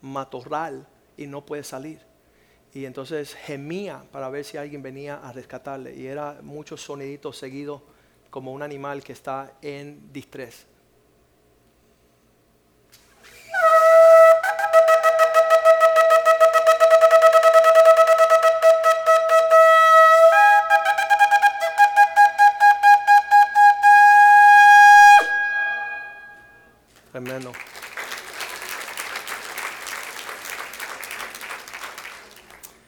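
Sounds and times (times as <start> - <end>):
speech: 0.0 - 2.1, 2.7 - 10.7
trumpet call: 13.4 - 26.7.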